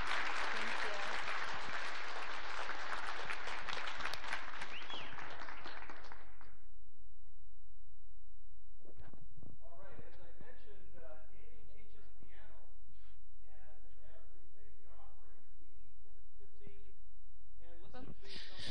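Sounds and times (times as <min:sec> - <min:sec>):
audience applause: 0:00.0 - 0:06.5.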